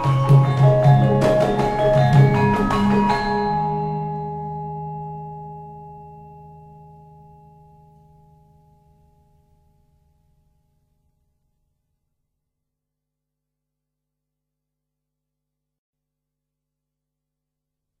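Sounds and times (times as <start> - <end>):
Javanese gamelan music: 0.0 - 7.9.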